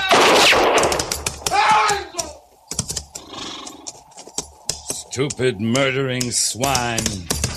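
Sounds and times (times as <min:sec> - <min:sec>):
gunshot: 0:00.1 - 0:01.6
speech: 0:05.2 - 0:07.4.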